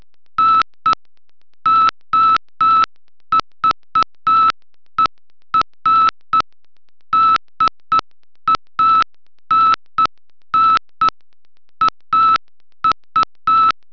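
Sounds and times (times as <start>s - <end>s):
morse code beeps: 1.7s - 6.4s, 7.1s - 11.2s, 11.8s - 13.9s.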